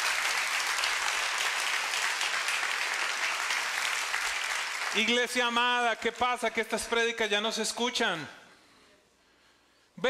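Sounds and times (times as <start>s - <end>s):
audience applause: 0.0s - 5.4s
speech: 5.0s - 8.4s.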